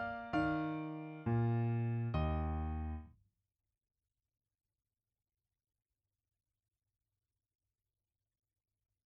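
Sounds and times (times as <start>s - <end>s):
art song for voice and piano: 0.0s - 3.1s.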